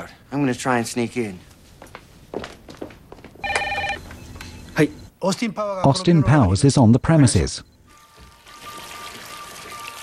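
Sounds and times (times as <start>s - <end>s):
speech: 0.1s - 1.5s, 4.8s - 7.7s
telephone bell ringing: 3.4s - 4.0s, 8.0s - 10.0s.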